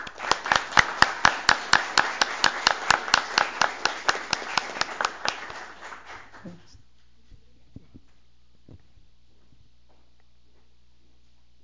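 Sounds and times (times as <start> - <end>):
applause for two honorees: 0.0 - 6.8.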